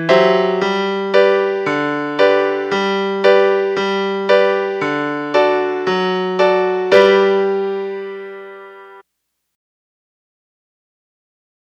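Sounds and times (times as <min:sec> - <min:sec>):
musical accompaniment: 0:00.0 - 0:09.0.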